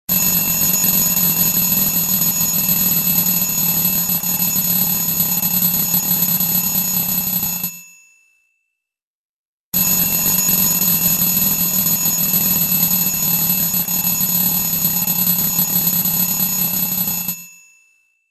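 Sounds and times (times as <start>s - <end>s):
classic alarm ringtone: 0.1s - 8.5s, 9.8s - 18.2s.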